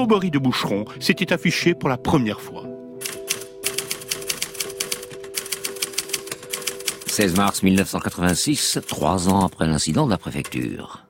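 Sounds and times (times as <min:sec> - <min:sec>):
speech: 0:00.0 - 0:03.1, 0:07.2 - 0:11.0
typewriter typing frantically: 0:03.0 - 0:10.8.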